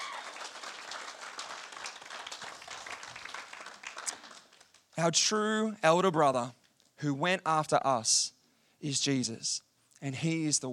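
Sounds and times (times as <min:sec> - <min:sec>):
audience applause: 0:00.0 - 0:04.8
speech: 0:05.0 - 0:10.7.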